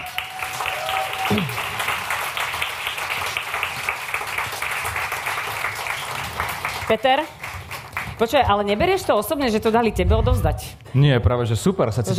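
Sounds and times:
crowd applauding: 0.0s - 8.8s
speech: 6.9s - 7.4s, 8.2s - 12.1s.

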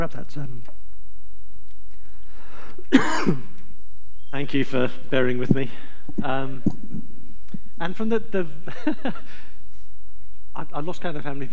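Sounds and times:
speech: 0.0s - 0.8s, 2.8s - 3.6s, 4.3s - 7.1s, 7.8s - 9.5s, 10.6s - 11.5s
quiet hum: 0.0s - 11.5s
harsh throaty cough from someone with a tickly throat: 2.9s - 3.5s.

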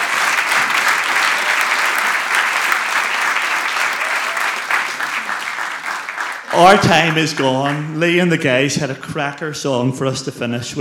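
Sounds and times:
audience round of applause: 0.0s - 8.0s
speech: 6.6s - 10.7s.

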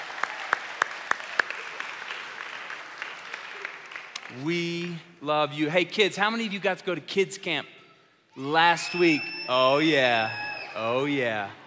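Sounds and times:
audience applause: 0.0s - 4.9s
speech: 4.3s - 7.8s, 8.4s - 11.6s.

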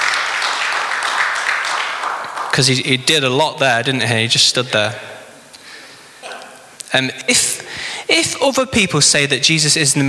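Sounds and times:
audience round of applause: 0.0s - 2.7s
speech: 2.6s - 5.1s, 6.9s - 7.5s, 8.1s - 10.0s.

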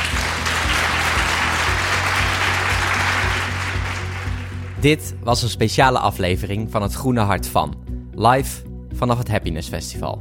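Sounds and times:
audience applause: 0.0s - 4.8s
speech: 4.8s - 10.1s.

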